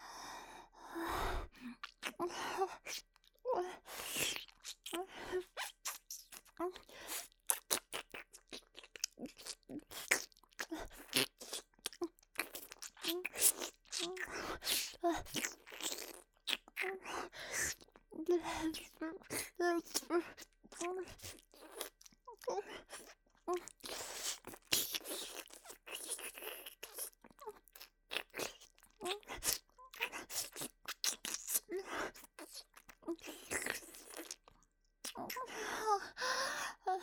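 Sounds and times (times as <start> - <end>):
breathing: 0.0 - 1.7, 17.3 - 17.7, 35.5 - 37.0
wet ASMR ear-eating and ear-licking mouth sounds: 1.6 - 16.9, 18.8 - 35.5.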